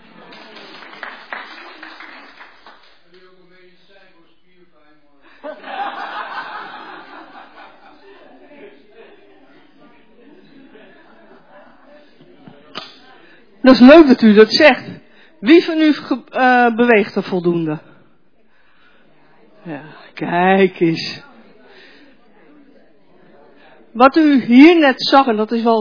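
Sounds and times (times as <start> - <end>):
laughter: 0.0 - 2.4, 5.2 - 13.3
audience applause: 0.0 - 3.2
speech: 13.7 - 17.9, 20.2 - 21.3, 24.0 - 25.7.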